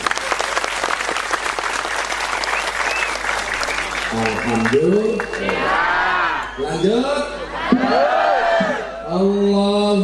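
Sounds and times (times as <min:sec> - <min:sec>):
audience applause: 0:00.0 - 0:06.6
speech: 0:04.1 - 0:06.0, 0:06.6 - 0:08.2, 0:09.1 - 0:10.0.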